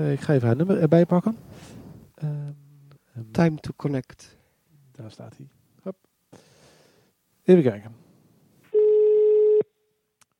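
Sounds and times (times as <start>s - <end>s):
speech: 0.0s - 2.6s, 3.2s - 4.4s, 5.0s - 6.0s, 7.5s - 8.0s
telephone ringing tone on outgoing call: 8.7s - 9.7s.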